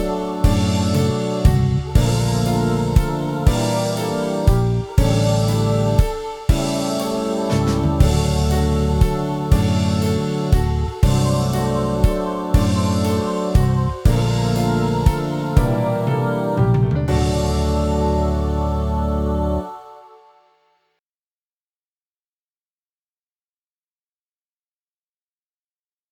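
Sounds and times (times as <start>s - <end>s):
backing track: 0.0s - 19.8s.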